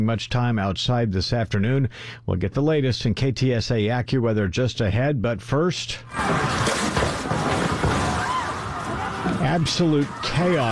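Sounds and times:
speech: 0.0 - 7.8, 9.4 - 10.7
people outside during an earthquake in Venezuela: 6.0 - 10.7.

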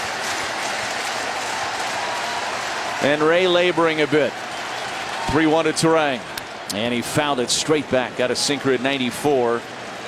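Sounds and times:
stadium crowd applauding: 0.0 - 7.3
stadium crowd cheering: 0.0 - 10.0
speech: 3.0 - 4.4, 5.3 - 9.8.

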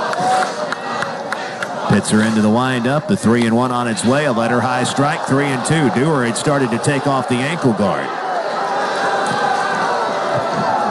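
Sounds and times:
baseball stadium crowd reacting: 0.0 - 10.8
speech: 2.0 - 8.2.

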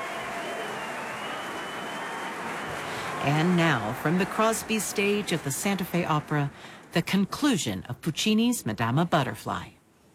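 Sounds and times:
opera audience applauding orchestra: 0.0 - 6.8
speech: 3.2 - 9.8.

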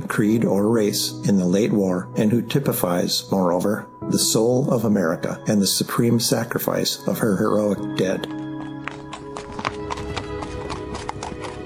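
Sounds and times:
speech: 0.2 - 8.4
horse hooves on pavement pulling a caisson: 8.2 - 11.6.

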